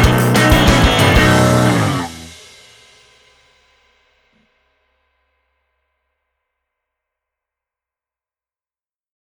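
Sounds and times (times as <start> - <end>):
swing music: 0.0 - 2.4.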